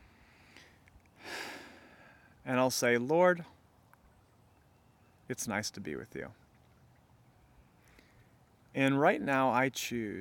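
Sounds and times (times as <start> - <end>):
deep breath: 0.0 - 2.4
speech: 2.4 - 3.6, 5.3 - 6.4, 8.8 - 10.1.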